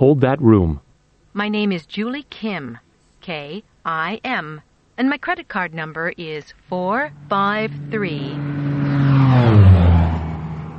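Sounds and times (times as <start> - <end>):
speech: 0.0 - 8.6
airplane flying overhead: 7.0 - 10.7.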